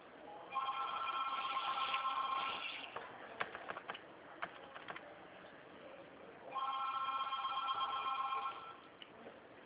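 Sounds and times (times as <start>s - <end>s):
telephone ringing with warbling electronic tone: 0.5s - 3.0s, 6.5s - 8.8s.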